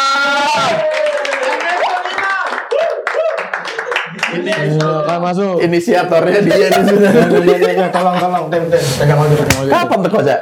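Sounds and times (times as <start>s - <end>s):
crowd clapping: 0.6s - 5.1s
speech: 4.4s - 10.4s
laughter: 6.3s - 8.8s.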